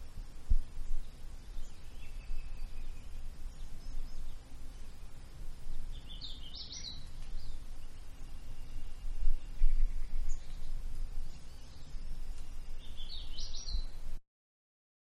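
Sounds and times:
bird twittering in woodland: 0.9 - 5.1, 5.7 - 14.0.

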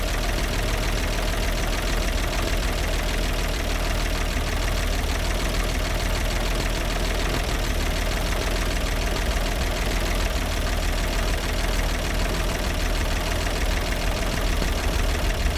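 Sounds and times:
1942 Bedford WS classic commercial truck engine idling: 0.0 - 15.5.

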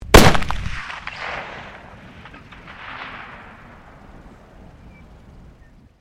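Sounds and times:
MAG-1 rifle firing: 0.1 - 4.0.

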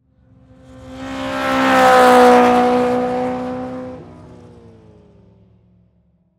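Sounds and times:
race car passing by: 0.2 - 5.4.

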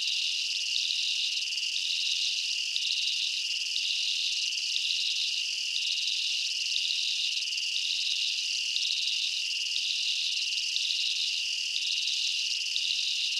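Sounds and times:
insects chirping in a jungle at night: 0.1 - 13.3.

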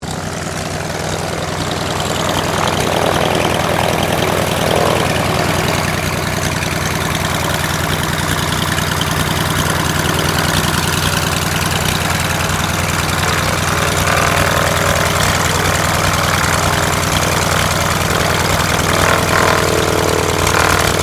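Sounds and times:
CT4A military trainer aircraft idling: 0.0 - 21.0.

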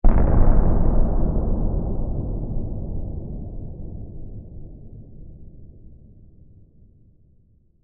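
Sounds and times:
distant explosion blast: 0.0 - 6.0.

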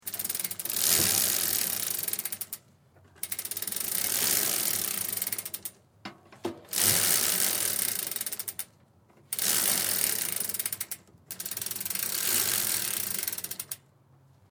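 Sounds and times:
bike chain spinning fast: 0.0 - 2.6, 3.2 - 5.7, 6.7 - 8.7, 9.3 - 13.8.

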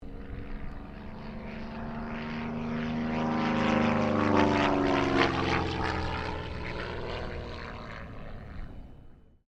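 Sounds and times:
Cessna 195 aircraft passing: 0.0 - 9.4.

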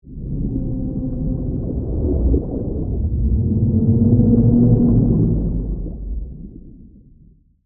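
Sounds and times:
horror sea creature moan, whale song: 0.1 - 6.2.

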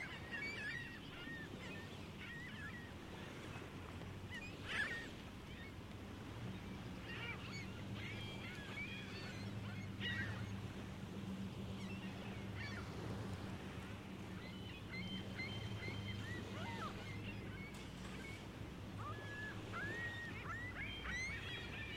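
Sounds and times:
gull flock calling at Lake Ontario: 0.0 - 21.9.

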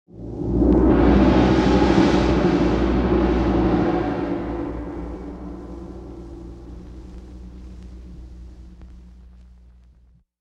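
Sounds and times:
Chinese gong roll: 0.2 - 8.3.

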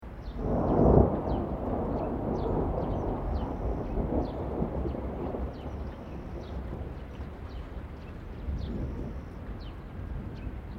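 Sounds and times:
birds: 0.1 - 10.7
distant low thunder: 0.2 - 10.7.

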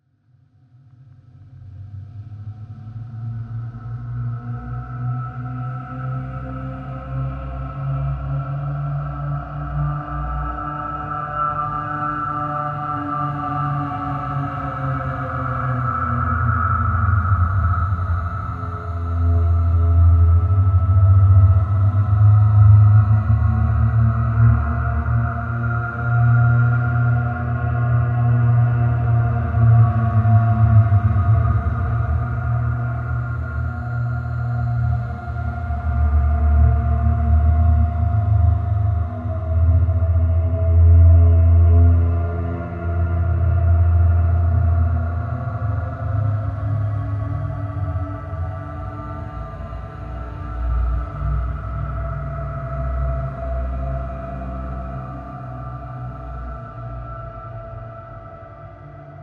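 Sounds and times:
ghostly music bed: 2.3 - 59.2.

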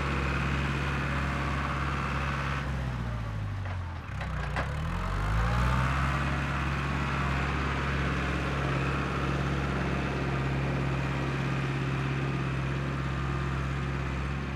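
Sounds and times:
distant tractor working on a farm: 0.0 - 14.4.

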